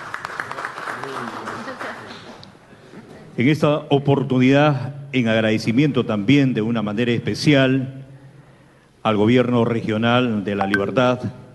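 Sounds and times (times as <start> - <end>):
crowd applauding: 0.0 - 2.2
speech: 3.4 - 8.0, 9.0 - 11.4.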